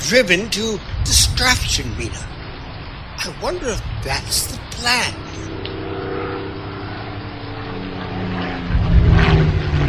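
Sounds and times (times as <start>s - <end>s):
speech: 0.1s - 2.4s, 3.2s - 5.6s
WWII Japanese propeller fighter plane approaching: 5.2s - 9.8s.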